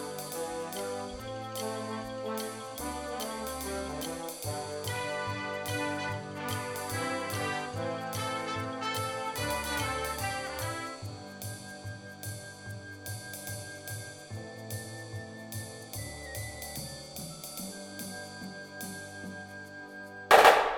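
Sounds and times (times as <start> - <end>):
snare drum: 0.0 - 11.6, 20.3 - 20.7
music: 0.0 - 20.7.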